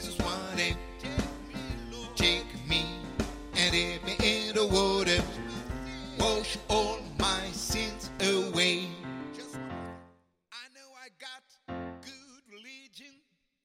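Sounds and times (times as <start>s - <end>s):
alto singing: 0.0s - 10.0s.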